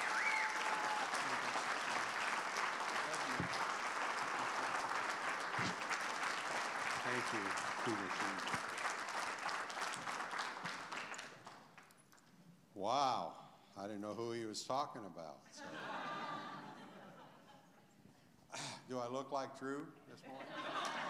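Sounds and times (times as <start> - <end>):
church congregation applauding in a standing ovation: 0.0 - 12.0
speech: 7.1 - 8.7, 12.8 - 15.9, 18.9 - 20.6
laughter: 15.6 - 17.7, 20.2 - 21.0.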